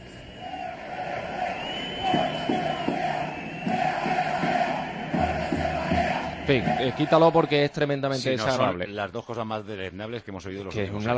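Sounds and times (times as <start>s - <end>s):
football crowd chanting: 0.3s - 7.6s
speech: 6.5s - 11.1s.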